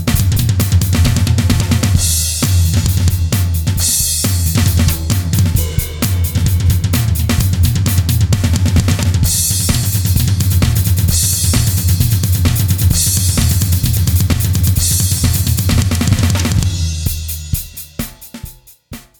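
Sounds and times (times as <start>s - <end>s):
drums: 0.0s - 19.1s.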